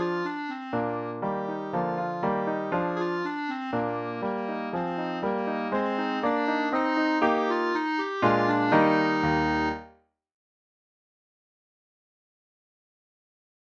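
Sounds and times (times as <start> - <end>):
clarinet: 0.0 - 10.0.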